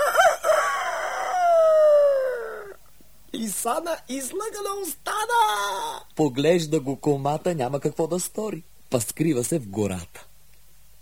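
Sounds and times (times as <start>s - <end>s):
rooster crowing: 0.0s - 3.0s
speech: 3.5s - 10.3s.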